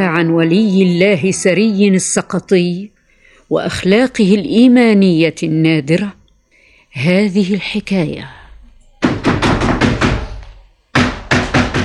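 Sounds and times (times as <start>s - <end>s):
speech: 0.0s - 6.2s, 6.9s - 8.4s
loud rapid knocking on a door by a neighbour: 9.0s - 11.8s.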